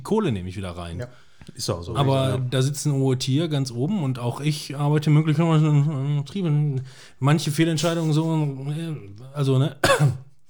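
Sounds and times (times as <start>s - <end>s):
speech: 0.1s - 10.4s
person sneezing: 9.8s - 10.4s.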